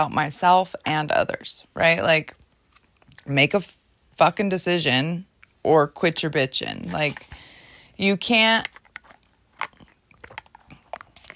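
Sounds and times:
speech: 0:00.0 - 0:02.4, 0:03.2 - 0:08.8
person drinking water: 0:09.6 - 0:11.3.

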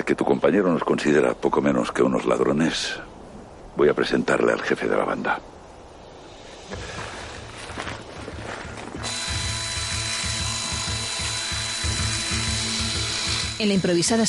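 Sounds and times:
speech: 0:00.1 - 0:03.1, 0:03.8 - 0:05.5, 0:06.7 - 0:07.0, 0:13.6 - 0:14.2
fast rhythmic ratcheting clatter: 0:09.0 - 0:13.8
small circular saw running with high metallic whine: 0:09.0 - 0:14.2.

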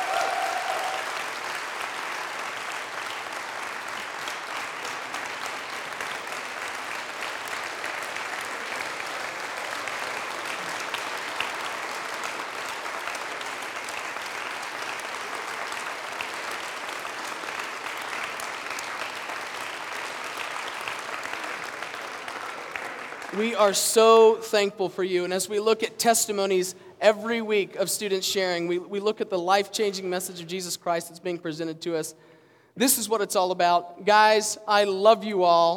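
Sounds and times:
audience applause, standing ovation: 0:00.0 - 0:23.5
speech: 0:23.4 - 0:35.7.

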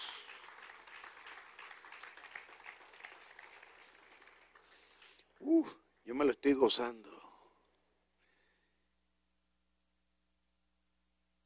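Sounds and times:
audience applauding: 0:00.0 - 0:05.4
speech: 0:05.4 - 0:07.2.

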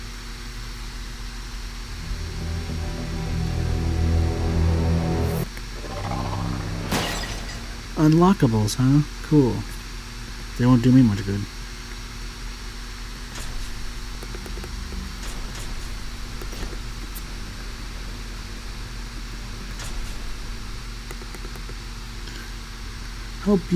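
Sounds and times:
loud fan running: 0:00.0 - 0:23.7
speech: 0:08.0 - 0:09.7, 0:10.6 - 0:11.6, 0:23.5 - 0:23.7.

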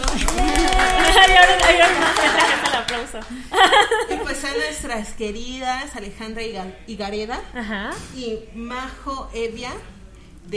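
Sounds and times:
people clapping for guests: 0:00.0 - 0:04.1
excited voices: 0:00.0 - 0:04.2
laughter: 0:01.1 - 0:04.4
speech: 0:01.4 - 0:10.5.

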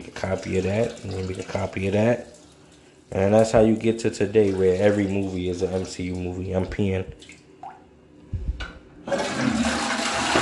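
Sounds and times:
toilet flushing: 0:00.0 - 0:06.4, 0:09.0 - 0:10.4
speech: 0:00.2 - 0:02.4, 0:03.1 - 0:07.4.

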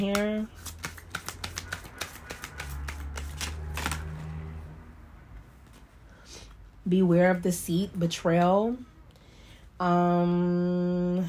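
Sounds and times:
speech: 0:00.0 - 0:00.7, 0:06.8 - 0:08.9, 0:09.8 - 0:11.2
oracle cards being shuffled: 0:00.0 - 0:04.4.

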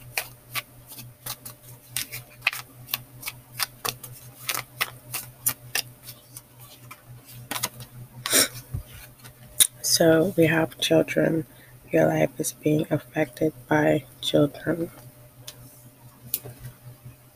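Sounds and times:
tarot cards being shuffled: 0:00.0 - 0:09.5
speech: 0:10.0 - 0:15.0.

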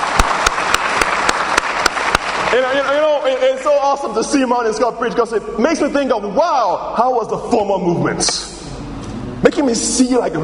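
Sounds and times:
crowd applause: 0:00.0 - 0:03.6
speech: 0:02.5 - 0:08.5, 0:09.4 - 0:10.4.

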